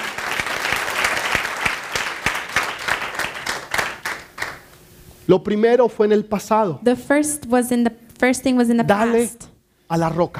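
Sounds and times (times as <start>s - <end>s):
strong audience applause: 0.0s - 4.7s
speech: 5.3s - 10.3s.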